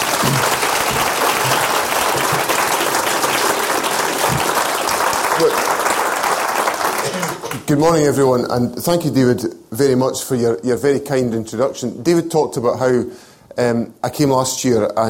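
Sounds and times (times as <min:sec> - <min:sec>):
audience applause welcoming a speaker: 0:00.0 - 0:07.7
speech: 0:05.4 - 0:05.7, 0:07.7 - 0:15.0.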